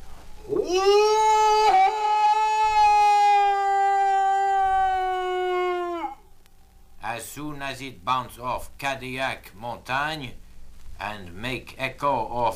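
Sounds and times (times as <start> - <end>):
man imitating a moose-call holler: 0.4 - 6.2
speech: 7.7 - 10.4, 11.0 - 12.5.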